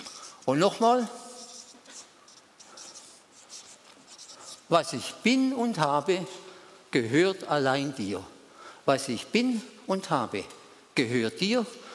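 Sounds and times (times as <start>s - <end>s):
speech: 0.5s - 1.2s, 4.7s - 11.8s
writing a word on a board: 1.0s - 4.7s.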